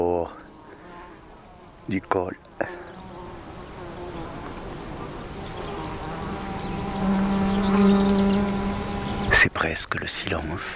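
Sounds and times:
insects chirping outdoors: 0.4 - 9.6
speech: 1.9 - 2.8, 9.4 - 10.7
low droning insect buzz: 3.0 - 9.4.

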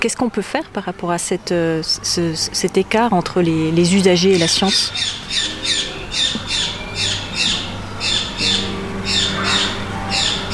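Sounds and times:
speech: 0.0 - 6.3
bird squawking: 3.8 - 10.5.

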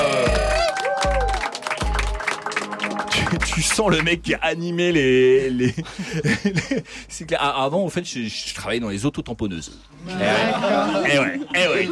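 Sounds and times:
audience applause: 0.0 - 4.2
laughter: 3.0 - 4.0, 5.4 - 6.9, 10.0 - 11.9
speech: 3.6 - 11.9.

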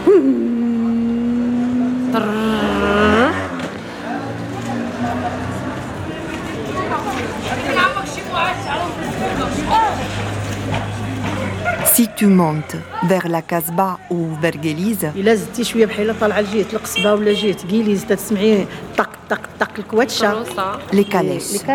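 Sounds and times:
mopeds and motorbikes passing in medina street: 0.0 - 21.7
speech: 0.2 - 0.6, 2.2 - 2.6, 12.2 - 21.7.

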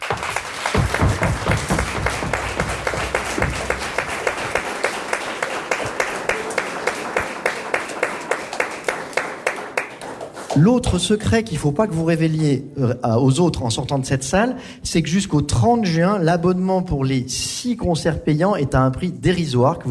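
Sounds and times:
audience applause: 0.0 - 10.7
speech: 10.6 - 19.9.

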